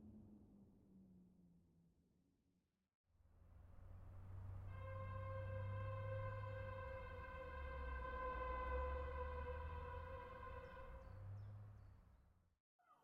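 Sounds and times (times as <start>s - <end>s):
random ambience: 3.5s - 11.6s.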